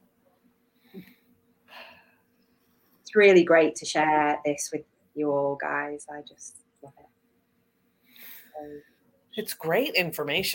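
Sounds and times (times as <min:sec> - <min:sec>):
deep breath: 0:00.8 - 0:02.4, 0:08.0 - 0:09.1
speech: 0:00.9 - 0:01.2, 0:03.1 - 0:07.1, 0:08.6 - 0:10.5.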